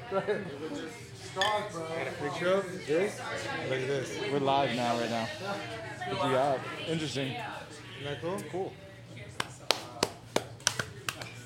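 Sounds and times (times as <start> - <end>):
speech: 0.1 - 8.8
hand clap for syncing video: 9.4 - 11.4.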